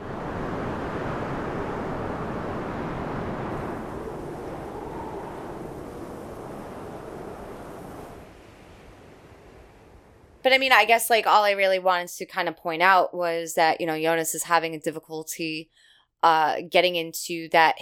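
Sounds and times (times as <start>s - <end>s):
wind buffeting the microphone: 0.0s - 10.5s
speech: 10.4s - 17.8s.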